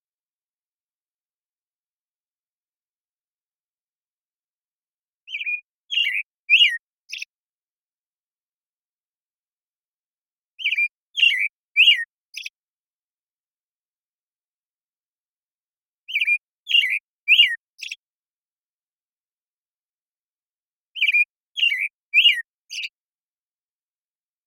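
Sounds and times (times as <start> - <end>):
American Robin whistled caroling: 5.3 - 7.3, 10.6 - 12.5, 16.1 - 18.0, 21.0 - 22.9.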